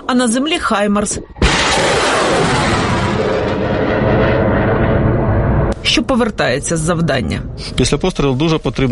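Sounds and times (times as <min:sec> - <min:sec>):
speech: 0:00.1 - 0:01.9, 0:06.0 - 0:08.8
military aircraft flying overhead: 0:01.4 - 0:05.8.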